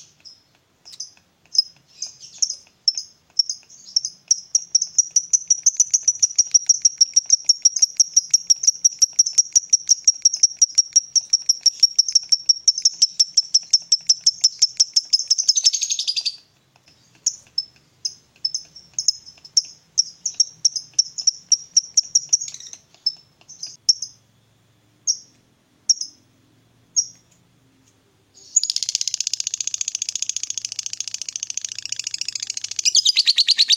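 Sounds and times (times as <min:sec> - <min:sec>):
lovebird chirping: 0:00.0 - 0:24.3, 0:25.0 - 0:26.3, 0:26.9 - 0:27.4, 0:28.3 - 0:33.7.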